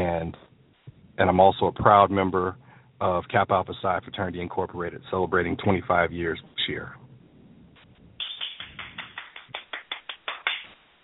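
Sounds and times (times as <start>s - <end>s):
speech: 0.2s - 0.5s, 1.2s - 7.0s
one person clapping: 8.2s - 10.8s.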